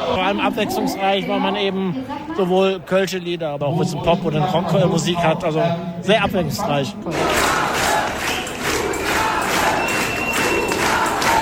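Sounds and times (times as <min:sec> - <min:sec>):
speech: 0:00.1 - 0:07.6
concert crowd shouting for an encore: 0:07.1 - 0:11.4.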